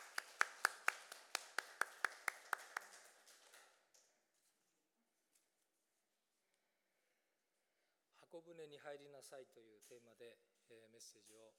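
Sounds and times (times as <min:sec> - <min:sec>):
audience applause: 0:00.0 - 0:03.4
speech: 0:08.3 - 0:11.5.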